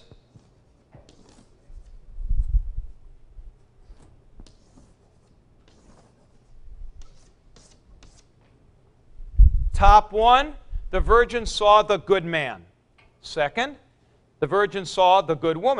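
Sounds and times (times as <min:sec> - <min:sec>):
arrows being drawn on a board: 0:00.0 - 0:02.0, 0:03.9 - 0:08.4
speech: 0:09.8 - 0:13.8, 0:14.4 - 0:15.7.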